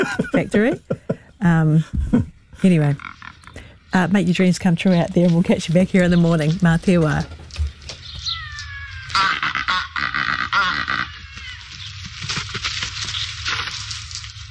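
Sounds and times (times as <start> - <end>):
laughter: 0.0 - 1.3
speech: 0.0 - 3.2, 3.9 - 7.4
Cape Barren goose honking: 9.1 - 11.2.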